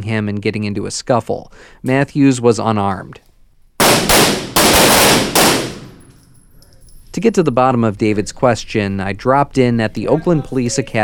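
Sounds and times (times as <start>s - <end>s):
speech: 0.0s - 3.3s, 7.2s - 11.0s
gunfire from recruits' shooting drills: 3.8s - 6.2s.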